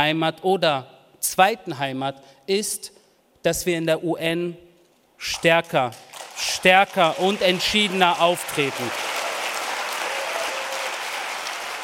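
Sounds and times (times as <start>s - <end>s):
speech: 0.0s - 4.6s, 5.2s - 9.0s
long applause: 6.0s - 11.8s.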